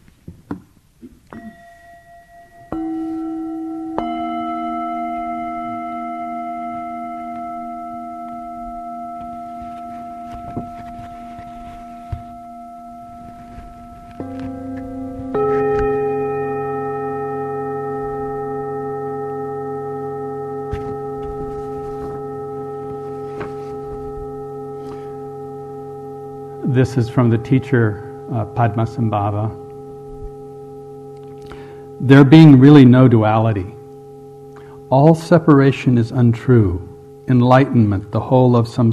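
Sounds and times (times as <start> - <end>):
meditation bells ringing: 1.3 - 38.9
speech: 26.8 - 29.6, 32.0 - 33.8, 34.9 - 38.9.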